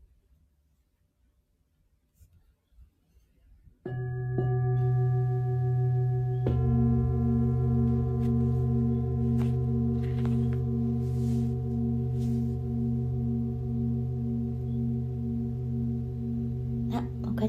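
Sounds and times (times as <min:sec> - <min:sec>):
singing bowl struck and ringing: 0:03.9 - 0:17.4.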